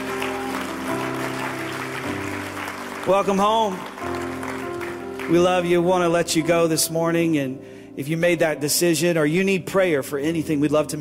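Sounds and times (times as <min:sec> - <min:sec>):
church congregation applauding: 0:00.0 - 0:06.3
sustained music chords: 0:00.0 - 0:08.7
speech: 0:03.1 - 0:04.2, 0:05.3 - 0:11.0.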